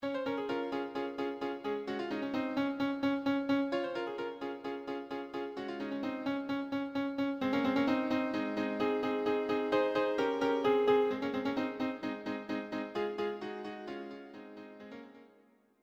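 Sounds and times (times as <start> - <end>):
piano: 0.0 - 15.6.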